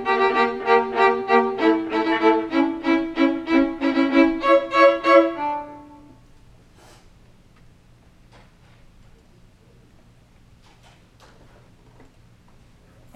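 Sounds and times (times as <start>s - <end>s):
second viola part: 0.0s - 6.2s.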